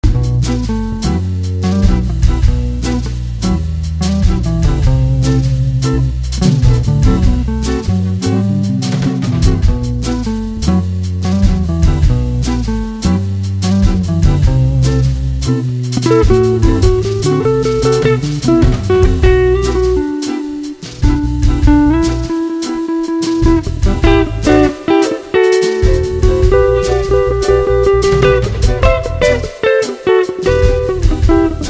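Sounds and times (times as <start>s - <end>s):
jazz music: 0.0s - 31.6s.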